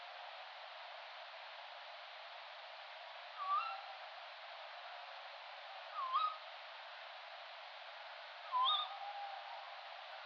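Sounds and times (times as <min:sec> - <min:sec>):
adult male tawny owl Strix aluco hooting territorial advertising call: 0:03.4 - 0:03.9, 0:08.5 - 0:09.6.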